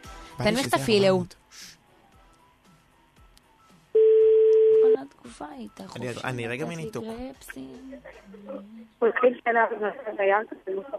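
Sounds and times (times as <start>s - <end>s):
speech: 0.4s - 1.8s, 5.3s - 10.9s
telephone tone as a line is opened for a live on-air call: 4.0s - 5.0s.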